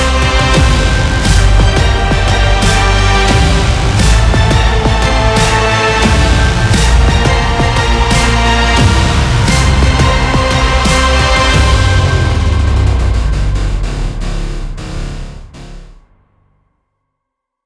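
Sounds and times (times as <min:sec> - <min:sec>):
dubstep trailer music: 0:00.0 - 0:16.6.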